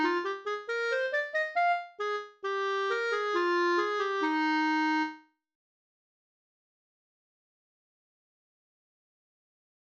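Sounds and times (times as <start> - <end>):
clarinet etude: 0.0 - 5.3.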